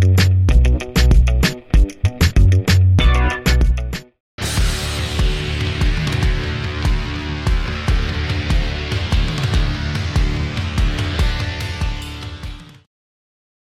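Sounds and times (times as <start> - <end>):
instrumental music: 0.0 - 12.7.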